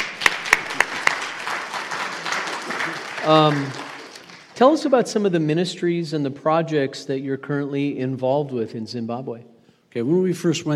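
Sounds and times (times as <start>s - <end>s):
audience applause: 0.0s - 4.6s
speech: 3.2s - 3.8s, 4.6s - 10.7s.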